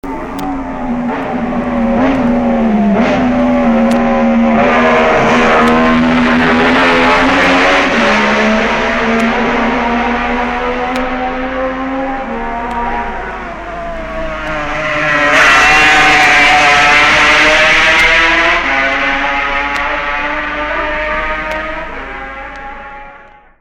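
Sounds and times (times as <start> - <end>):
motorcycle: 0.0 - 23.5.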